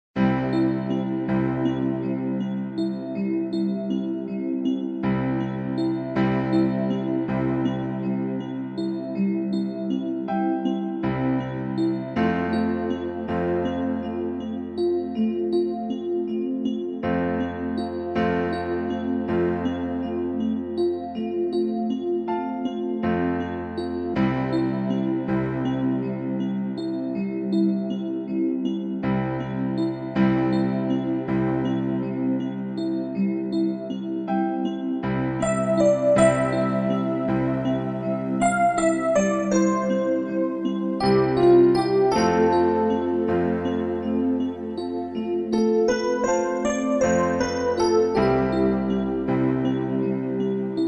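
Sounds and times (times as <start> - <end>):
fairytale relaxation music: 0.2 - 50.8.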